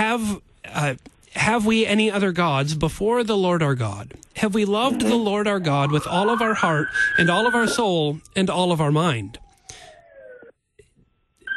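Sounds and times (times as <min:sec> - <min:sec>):
speech: 0:00.2 - 0:09.4
ambulance siren passing by: 0:05.6 - 0:08.3, 0:08.9 - 0:10.5.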